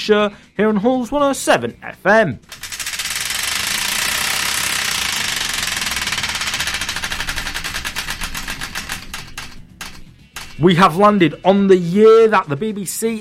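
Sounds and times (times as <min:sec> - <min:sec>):
speech: 0:00.0 - 0:02.6, 0:10.6 - 0:13.1
Wheel of Destiny prize wheel spinning and clicking: 0:02.4 - 0:11.2.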